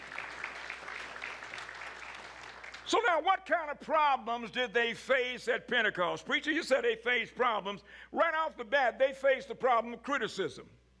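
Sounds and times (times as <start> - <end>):
church congregation clapping during a sermon: 0.0 - 3.0
speech: 2.9 - 10.8.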